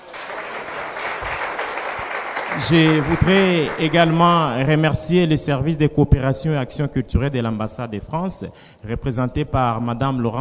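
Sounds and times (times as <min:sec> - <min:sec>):
audience applauding at a public event: 0:00.0 - 0:04.6
speech: 0:02.6 - 0:10.3.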